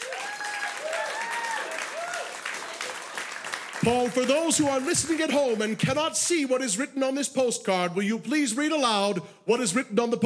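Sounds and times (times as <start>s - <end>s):
audience whoops and cheers: 0.0s - 3.1s
audience clapping: 0.0s - 6.5s
speech: 3.8s - 10.2s.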